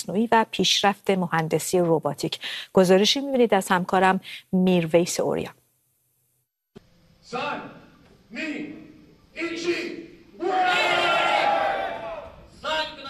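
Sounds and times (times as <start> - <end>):
speech: 0.0 - 5.6, 7.3 - 8.8, 9.4 - 11.2
crowd cheering and shouting at a humanoid robot fight in Tokyo: 10.4 - 12.5.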